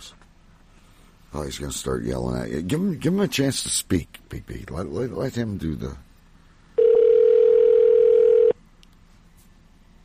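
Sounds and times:
speech: 1.3s - 6.1s
telephone dial tone after call disconnects: 6.8s - 8.6s.

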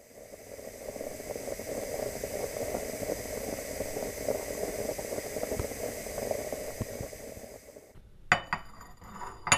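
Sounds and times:
water boiling while preparing coffee: 0.0s - 9.5s
cutlery clinking: 8.4s - 9.5s.

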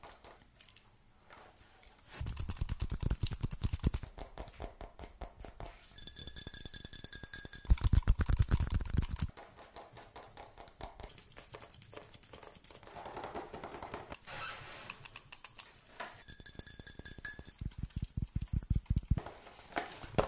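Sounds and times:
fast tapping: 2.2s - 4.5s, 6.1s - 9.9s, 16.2s - 19.2s.

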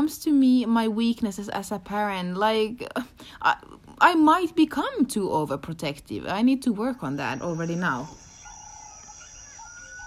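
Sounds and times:
speech: 0.1s - 8.2s
alarm going off: 7.1s - 10.0s.

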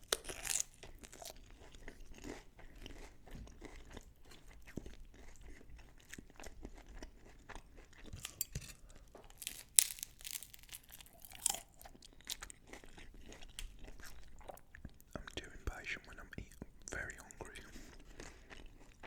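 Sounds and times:
crunching bites of poppadums and garlic naan: 0.0s - 1.4s, 8.2s - 8.7s, 9.3s - 14.7s
chewing and soft mouth sounds eating lamb bhuna curry: 0.0s - 19.0s.

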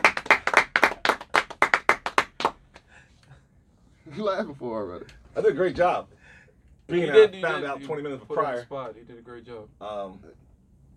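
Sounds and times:
audience clapping: 0.0s - 2.9s
speech: 4.2s - 6.2s, 6.9s - 10.4s.

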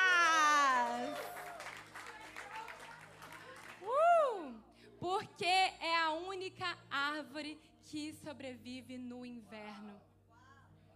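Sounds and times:
round of applause: 0.0s - 4.2s
speech: 6.5s - 10.1s.

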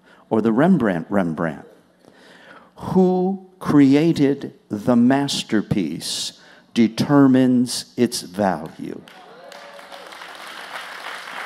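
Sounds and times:
speech: 0.3s - 1.7s, 2.8s - 9.2s
audience applause: 9.1s - 11.4s.

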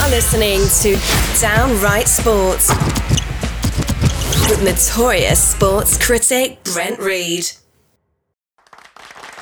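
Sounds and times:
speech: 0.1s - 3.2s, 4.5s - 7.6s
artificial canned applause: 8.6s - 9.3s.

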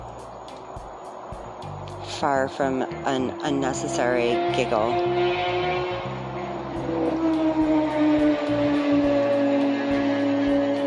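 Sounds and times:
speech: 2.2s - 6.1s
motorcycle flying by on a highway: 2.8s - 10.8s.

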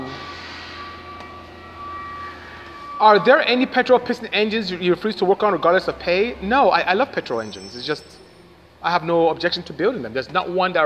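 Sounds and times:
garbage truck collecting trash: 0.0s - 8.8s
speech: 3.0s - 10.8s.

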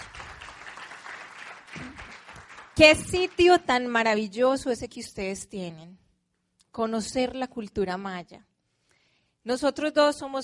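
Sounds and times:
crowd clapping: 0.0s - 3.7s
speech: 2.8s - 6.0s, 6.8s - 8.5s, 9.4s - 10.4s.

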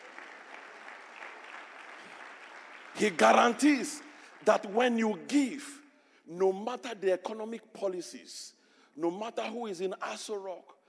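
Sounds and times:
audience clapping: 0.0s - 5.7s
speech: 3.0s - 10.8s.

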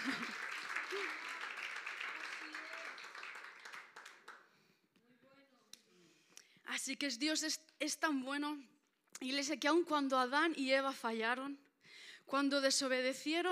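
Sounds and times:
church audience applauding: 0.0s - 4.5s
speech: 6.9s - 11.6s, 12.3s - 13.4s.

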